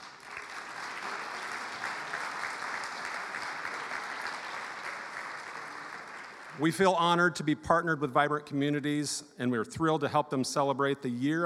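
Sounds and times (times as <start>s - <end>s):
audience applause: 0.0s - 6.8s
speech: 6.6s - 11.4s.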